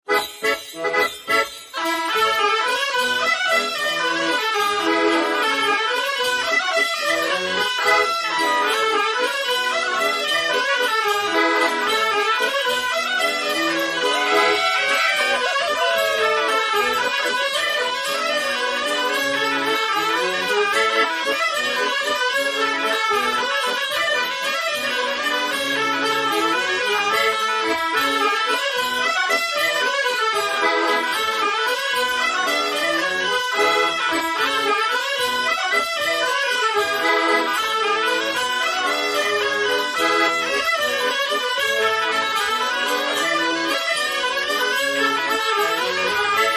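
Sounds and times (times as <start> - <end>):
accordion: 0.0 - 46.5
laughter: 14.1 - 17.0.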